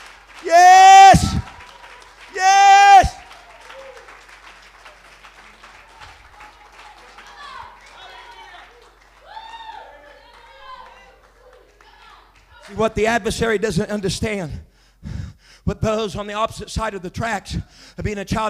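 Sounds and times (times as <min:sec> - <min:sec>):
audience clapping hands: 0:00.0 - 0:13.1
speech: 0:12.8 - 0:14.7, 0:15.7 - 0:18.4.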